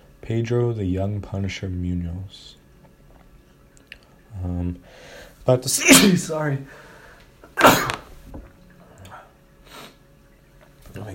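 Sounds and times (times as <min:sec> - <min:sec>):
speech: 0:00.3 - 0:02.6, 0:04.3 - 0:06.9
person sneezing: 0:05.7 - 0:06.4, 0:07.5 - 0:08.1.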